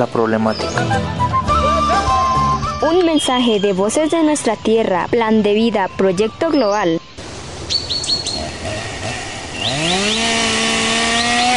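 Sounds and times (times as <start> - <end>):
speech: 0.0 - 1.3, 2.8 - 7.0
birds chirping: 0.0 - 11.5
chainsaw cutting trees: 8.3 - 11.5.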